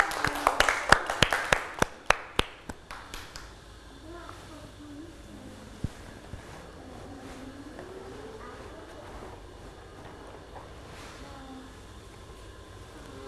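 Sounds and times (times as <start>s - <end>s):
children clapping: 0.0s - 3.6s
soft chatter: 3.6s - 13.2s.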